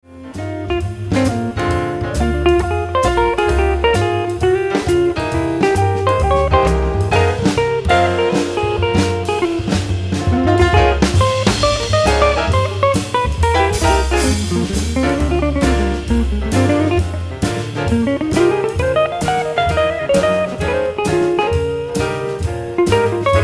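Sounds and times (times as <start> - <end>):
guitar: 0.1 - 23.4.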